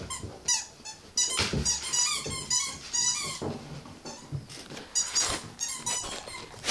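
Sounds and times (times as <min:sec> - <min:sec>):
squeaky toy: 0:00.1 - 0:03.4, 0:04.9 - 0:06.6.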